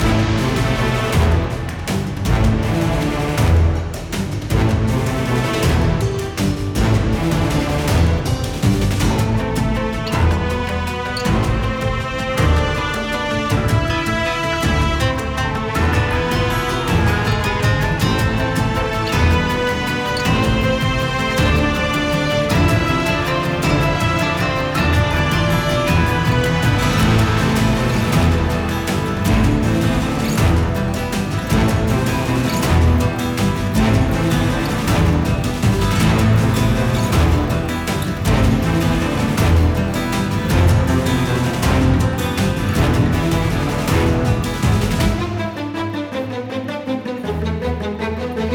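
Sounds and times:
battle music: 0.0 - 48.5.

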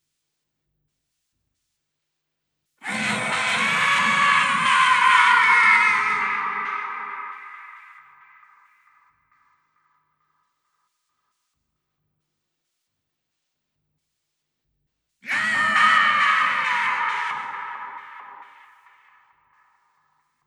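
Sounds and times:
ice monster ambience: 2.8 - 8.6, 15.2 - 19.3.

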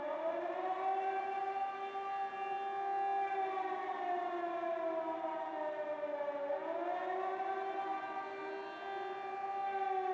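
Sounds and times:
air raid siren: 0.0 - 10.1.

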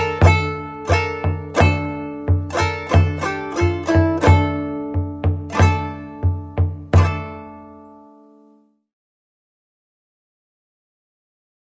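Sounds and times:
drum: 0.0 - 7.6
guitar: 0.0 - 8.7.

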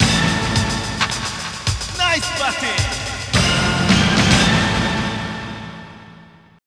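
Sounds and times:
strings in G sharp: 0.0 - 6.3.

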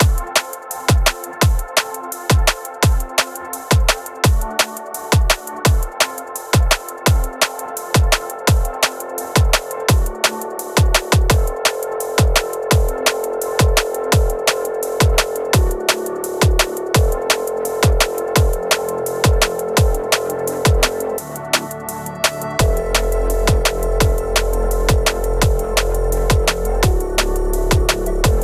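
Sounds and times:
background music for destroyed field: 0.0 - 28.4.

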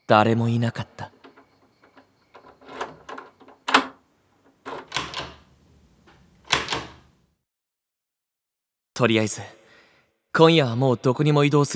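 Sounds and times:
speech: 0.1 - 1.1, 9.0 - 9.6, 10.3 - 11.7
door unlatched and pulled open: 0.1 - 7.2.

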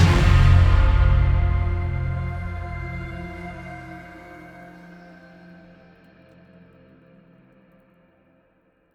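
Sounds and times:
battle music: 0.0 - 4.2.

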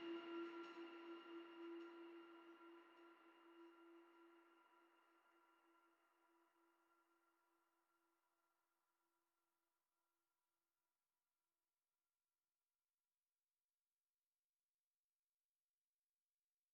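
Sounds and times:
music: 0.0 - 9.9.

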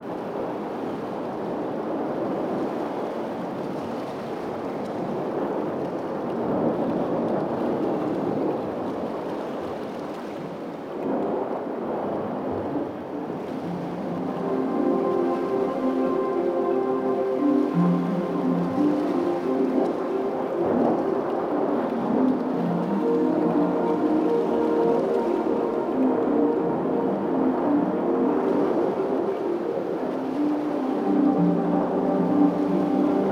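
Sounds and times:
beach cave ambience: 0.0 - 33.2.

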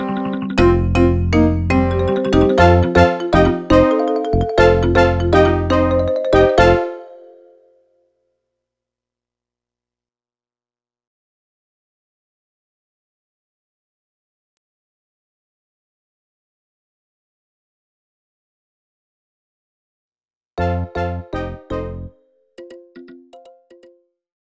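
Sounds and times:
beach music: 0.0 - 7.6, 20.6 - 23.9.

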